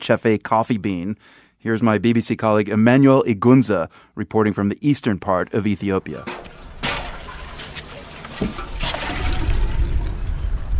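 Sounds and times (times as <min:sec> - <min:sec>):
speech: 0:00.0 - 0:06.5, 0:08.4 - 0:08.6
plastic and metal buckets drawing water from a big tank: 0:06.0 - 0:10.7.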